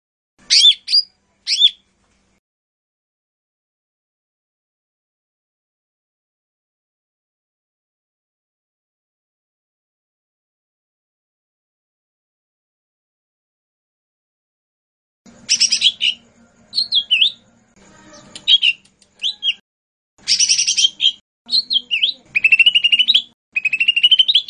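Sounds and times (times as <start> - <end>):
bird song of short bright whistled phrases and rasping buzzy bursts: 0.4 - 1.8, 15.4 - 19.6, 20.2 - 24.4.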